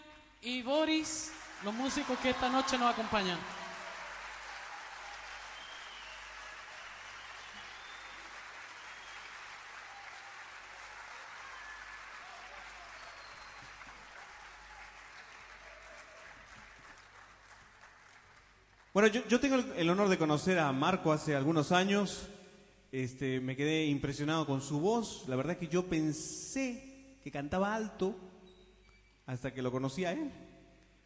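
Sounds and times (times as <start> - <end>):
speech: 0.4 - 3.6, 19.0 - 28.3, 29.3 - 30.5
audience applause: 1.3 - 19.0.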